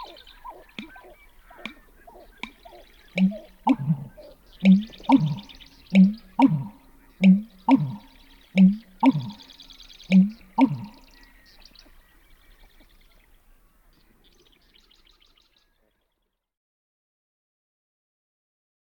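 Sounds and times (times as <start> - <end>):
American bittern calling in North America: 0.0 - 12.9.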